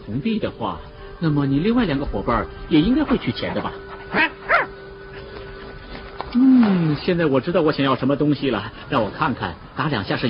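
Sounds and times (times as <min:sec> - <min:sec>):
speech: 0:00.1 - 0:04.4, 0:06.3 - 0:10.2
dog barking: 0:04.1 - 0:04.7.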